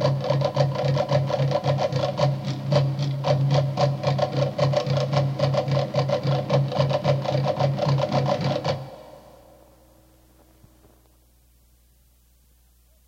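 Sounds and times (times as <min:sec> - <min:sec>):
Tahitian ethnic drums: 0:00.0 - 0:09.4.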